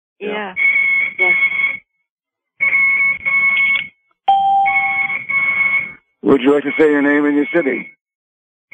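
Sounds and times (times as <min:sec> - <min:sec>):
speech: 0:00.2 - 0:00.6, 0:01.2 - 0:01.5, 0:06.2 - 0:08.0
IV infusion pump beeping: 0:02.7 - 0:06.0.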